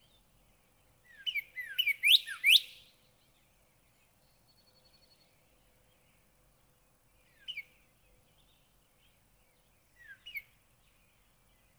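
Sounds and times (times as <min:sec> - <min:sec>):
Northern cardinal song of bright slurred whistled notes: 0:01.1 - 0:02.9.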